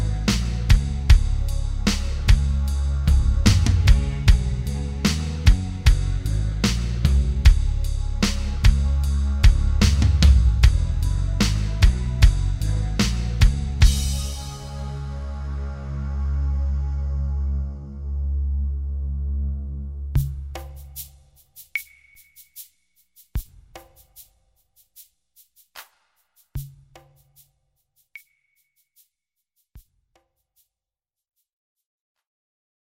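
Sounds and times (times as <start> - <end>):
ambient music: 0.0 - 20.7.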